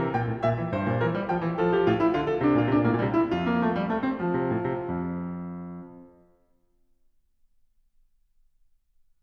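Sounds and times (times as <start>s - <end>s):
prelude in F major: 0.0s - 6.2s.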